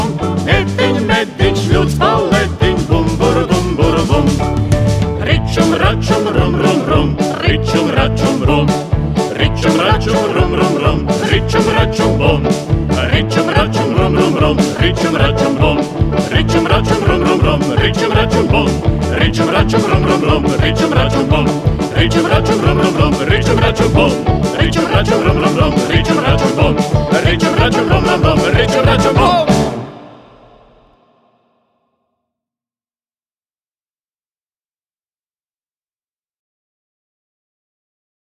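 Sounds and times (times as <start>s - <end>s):
polka music: 0.0s - 30.7s.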